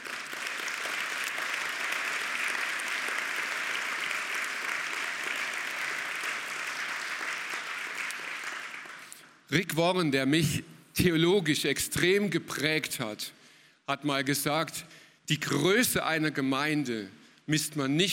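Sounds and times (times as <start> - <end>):
audience applause: 0.0 - 9.2
speech: 9.5 - 18.1.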